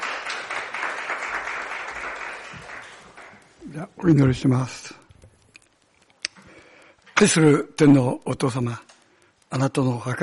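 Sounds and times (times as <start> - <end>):
audience applause: 0.0 - 3.6
speech: 3.8 - 5.0, 7.2 - 8.9, 9.5 - 10.2.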